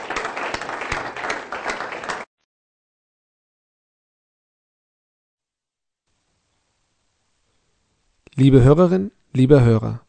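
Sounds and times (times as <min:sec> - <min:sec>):
audience applause: 0:00.0 - 0:02.3
speech: 0:08.4 - 0:10.0.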